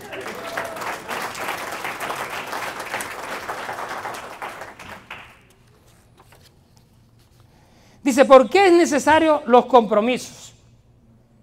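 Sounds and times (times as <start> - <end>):
crowd applauding: 0.0 - 5.6
speech: 8.1 - 10.4.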